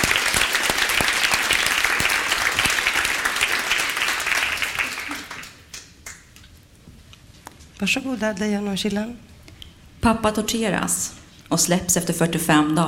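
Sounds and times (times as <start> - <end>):
audience giving warm applause: 0.0 - 6.3
speech: 7.8 - 9.3, 10.0 - 12.8.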